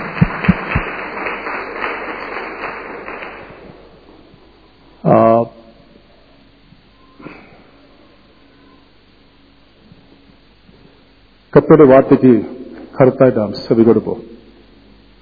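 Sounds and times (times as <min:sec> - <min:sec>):
congregation clapping to welcome a guest at a church service: 0:00.0 - 0:04.5
speech: 0:11.6 - 0:14.3.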